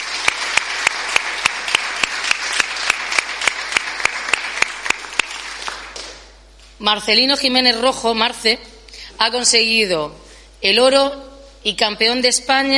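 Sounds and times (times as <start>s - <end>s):
audience applause: 0.0s - 6.2s
sharp rhythmic claps: 0.0s - 6.4s
speech: 6.8s - 12.7s.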